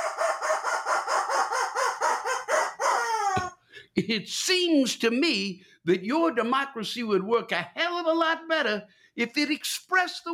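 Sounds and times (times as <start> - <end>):
rubber chicken squawking: 0.0 - 3.6
speech: 4.0 - 10.3.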